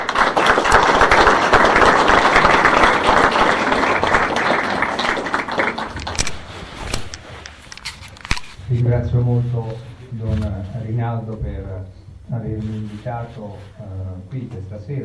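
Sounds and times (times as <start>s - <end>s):
audience applause: 0.0s - 6.7s
speech: 9.2s - 15.0s.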